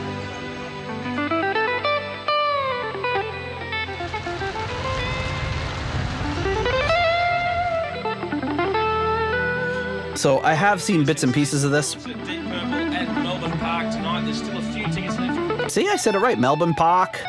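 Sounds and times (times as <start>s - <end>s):
band playing: 0.0s - 17.2s
electric guitar volume swells: 0.0s - 17.2s
low rumble: 3.8s - 8.6s
speech: 10.2s - 13.2s, 14.3s - 17.2s.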